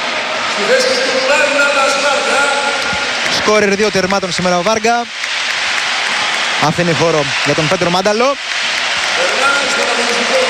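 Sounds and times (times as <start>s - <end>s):
speech: 0.6s - 5.3s, 6.6s - 8.5s
stadium crowd clapping and cheering for substituted player: 2.2s - 10.4s.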